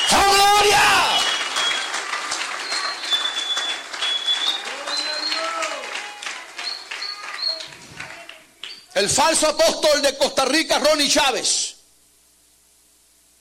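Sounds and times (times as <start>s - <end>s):
audience applause: 0.0s - 8.6s
speech: 9.0s - 11.6s.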